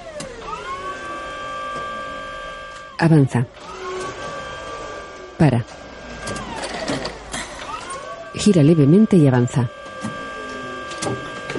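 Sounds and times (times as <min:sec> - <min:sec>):
electric motor whine of a forklift reversing near barrels: 0:00.0 - 0:11.5
speech: 0:03.0 - 0:03.8, 0:05.4 - 0:07.0, 0:08.4 - 0:09.8.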